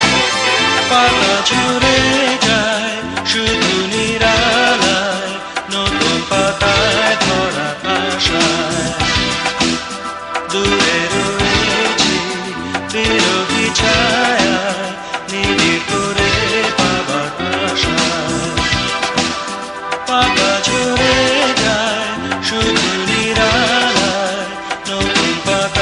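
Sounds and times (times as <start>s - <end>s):
popular Bangla song: 0.0s - 25.8s.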